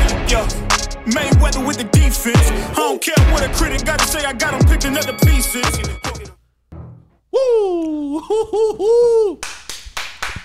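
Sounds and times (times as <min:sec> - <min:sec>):
speech: 0:00.3 - 0:05.9, 0:07.4 - 0:09.5
hands clapping: 0:09.4 - 0:10.4.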